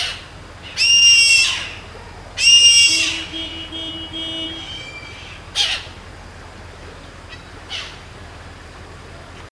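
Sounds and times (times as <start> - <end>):
bird screeching: 0.0 - 1.8, 2.4 - 3.3, 4.5 - 6.0, 7.3 - 8.0
low steady hum: 0.0 - 9.5.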